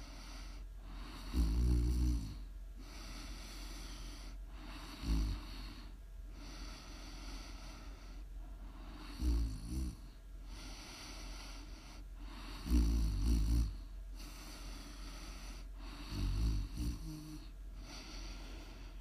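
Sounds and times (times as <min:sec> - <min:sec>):
faint breathing: 0:00.0 - 0:01.6, 0:02.2 - 0:19.0
soft steady hiss: 0:00.0 - 0:19.0
loud rumbling snores: 0:01.0 - 0:02.4, 0:04.8 - 0:05.7, 0:09.0 - 0:10.1, 0:12.4 - 0:18.0.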